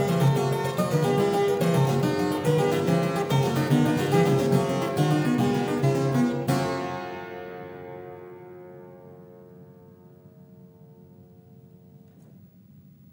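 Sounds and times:
prelude in G: 0:00.0 - 0:09.2.

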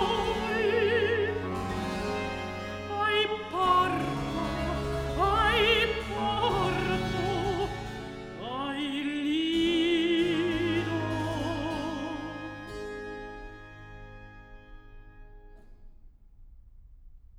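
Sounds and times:
cantata recitative: 0:00.0 - 0:13.9.

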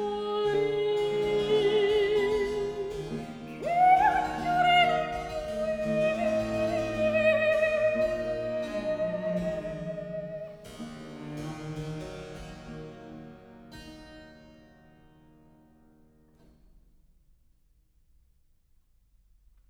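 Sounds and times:
cantata recitative: 0:00.0 - 0:10.7.

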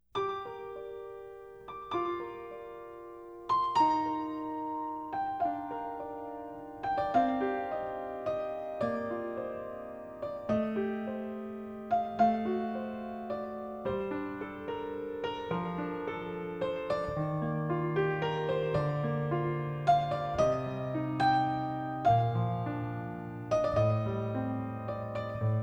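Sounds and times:
prelude: 0:00.2 - 0:25.6.

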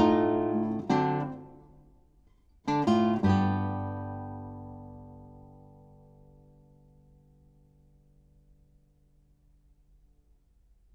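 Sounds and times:
blues on classical guitar: 0:00.0 - 0:08.8.

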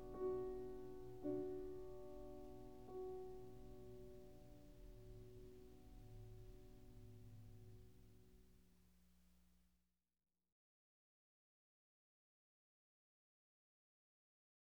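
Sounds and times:
piano prelude in B minor: 0:00.0 - 0:08.3.

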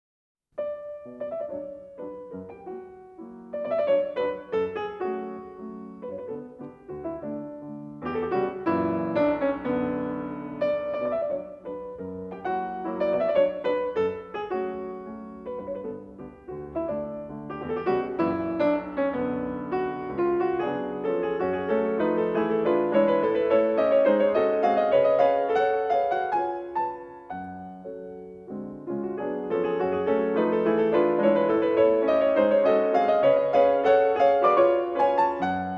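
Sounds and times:
mazurka in B minor on piano: 0:00.5 - 0:35.7.

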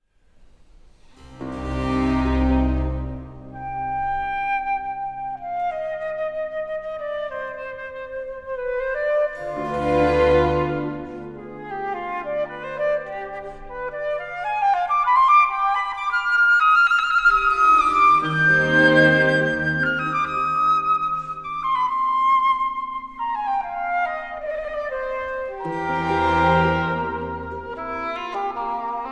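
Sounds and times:
orchestra: 0:00.9 - 0:29.1
oboe: 0:01.2 - 0:29.1.

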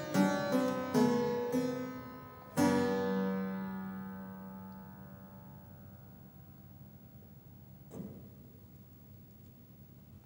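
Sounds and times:
prelude in G sharp minor: 0:00.0 - 0:05.6.

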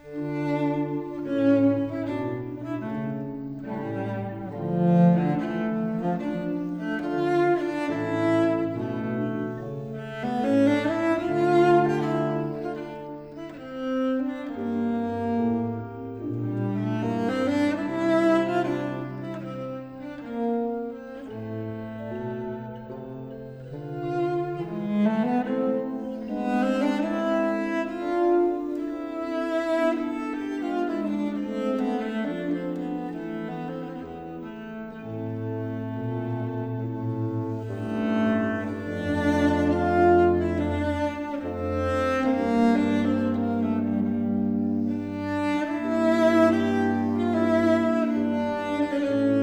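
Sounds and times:
violoncello playing a concerto Largo in F major: 0:00.0 - 0:49.4.

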